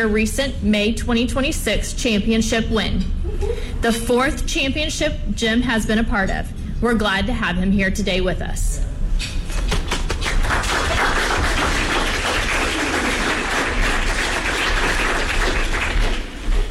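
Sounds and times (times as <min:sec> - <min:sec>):
speech: 0:00.0 - 0:09.3
round of applause: 0:09.8 - 0:16.6.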